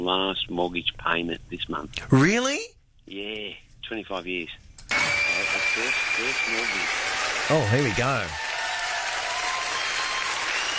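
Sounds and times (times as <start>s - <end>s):
speech: 0.0s - 8.4s
applause played as a crowd sound effect in a studio: 5.5s - 10.7s.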